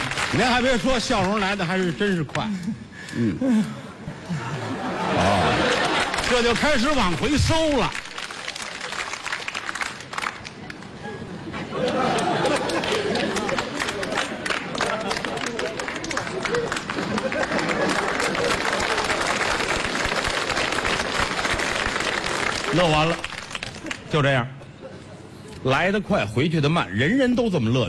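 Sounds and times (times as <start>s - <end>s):
audience applause: 0.0s - 1.6s, 5.0s - 11.0s, 11.8s - 24.1s
speech: 0.3s - 4.4s, 5.2s - 5.7s, 6.3s - 8.0s, 24.2s - 24.6s, 25.6s - 27.8s
audience laughter: 4.1s - 6.4s, 11.0s - 14.1s, 14.8s - 19.1s.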